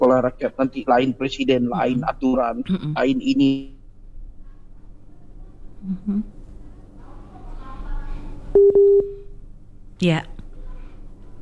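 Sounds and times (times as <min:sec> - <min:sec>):
speech: 0:00.0 - 0:03.8, 0:05.8 - 0:06.4, 0:08.6 - 0:09.2, 0:10.0 - 0:10.4
steady mid-pitched phone line tone after a dropped call: 0:08.6 - 0:09.3.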